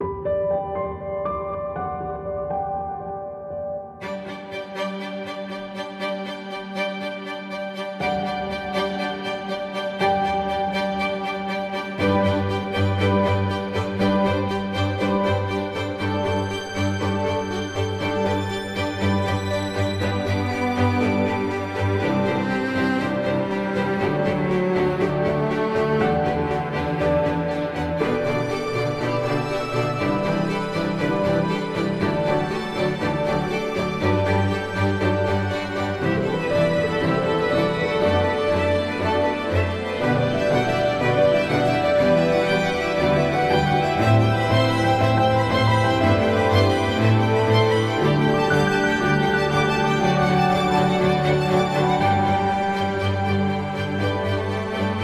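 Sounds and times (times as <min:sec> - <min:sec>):
ambient music: 0:00.0 - 0:55.0.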